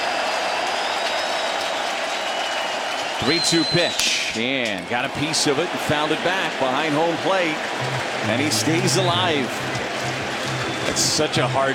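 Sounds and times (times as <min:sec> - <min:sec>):
faint whistles: 0:00.0 - 0:04.4, 0:10.4 - 0:11.4
baseball stadium crowd cheering and clapping: 0:00.0 - 0:11.7
speech: 0:03.2 - 0:09.9, 0:10.9 - 0:11.7.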